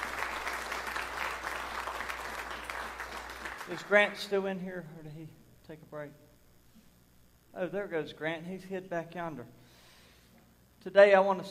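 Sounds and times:
audience hand clapping in praise: 0:00.0 - 0:04.2
speech: 0:03.7 - 0:06.3, 0:07.6 - 0:09.6, 0:10.8 - 0:11.4.

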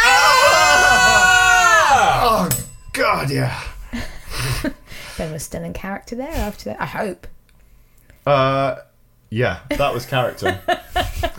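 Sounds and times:
people screaming: 0:00.0 - 0:02.6
speech: 0:03.2 - 0:07.3, 0:08.2 - 0:11.3
laughter: 0:09.7 - 0:11.3.

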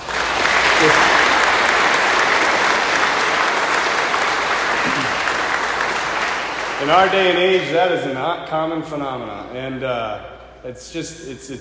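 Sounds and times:
audience applause: 0:00.0 - 0:08.2
speech: 0:00.8 - 0:01.1, 0:06.8 - 0:11.5.

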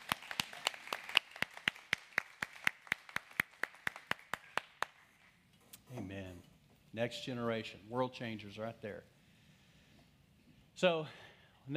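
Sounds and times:
scattered applause: 0:00.0 - 0:05.0
audience clapping in rhythm: 0:00.0 - 0:05.3
speech: 0:07.0 - 0:09.1, 0:10.8 - 0:11.7.

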